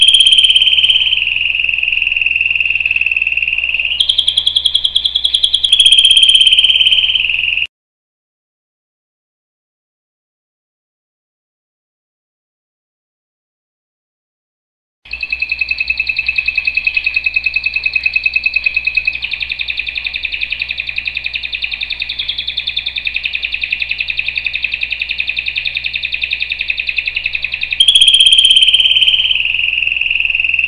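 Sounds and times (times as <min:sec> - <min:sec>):
canary singing trills: 0:00.0 - 0:07.7, 0:15.1 - 0:30.6.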